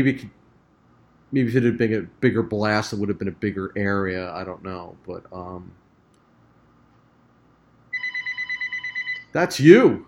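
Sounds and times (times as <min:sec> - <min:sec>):
speech: 0:00.0 - 0:00.4, 0:01.3 - 0:05.8, 0:09.3 - 0:10.0
rapid trilling electronic telephone bell: 0:07.9 - 0:09.4.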